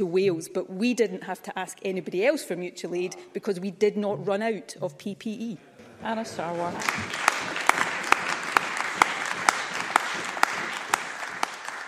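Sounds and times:
speech: 0:00.0 - 0:07.3
crowd applause: 0:06.4 - 0:11.8.

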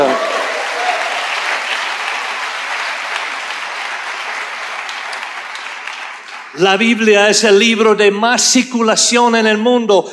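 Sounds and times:
audience applause: 0:00.0 - 0:06.8
speech: 0:06.6 - 0:10.1.

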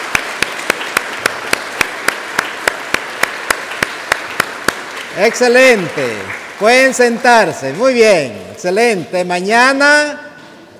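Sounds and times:
children applauding: 0:00.0 - 0:08.0
speech: 0:05.2 - 0:10.2.

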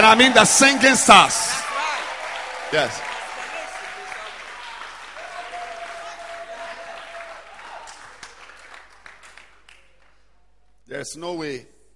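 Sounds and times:
speech: 0:00.0 - 0:01.6, 0:02.7 - 0:03.1, 0:11.0 - 0:11.7
faint cheer: 0:00.0 - 0:08.6
audience clapping: 0:00.0 - 0:10.4.

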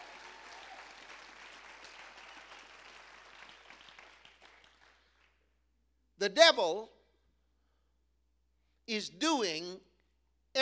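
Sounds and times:
audience clapping: 0:00.0 - 0:05.4
speech: 0:06.2 - 0:07.0, 0:08.9 - 0:09.9.

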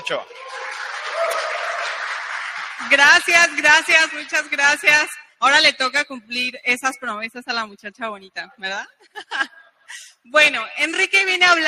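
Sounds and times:
audience applause: 0:00.0 - 0:04.6
speech: 0:00.1 - 0:00.7, 0:02.8 - 0:11.6
laughter: 0:09.1 - 0:09.7.

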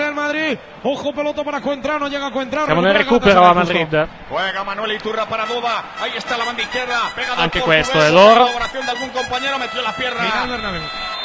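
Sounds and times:
speech: 0:00.5 - 0:11.0
toy trumpet: 0:05.4 - 0:11.2.

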